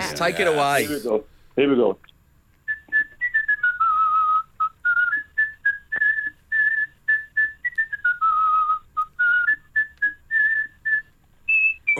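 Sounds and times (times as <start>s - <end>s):
speech: 0.2s - 2.1s
person whistling a Christmas carol: 2.7s - 11.9s.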